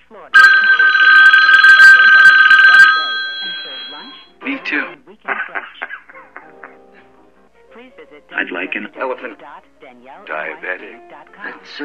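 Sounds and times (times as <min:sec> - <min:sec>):
telephone ringing with incoming call: 0:00.4 - 0:04.3
speech: 0:08.8 - 0:11.8.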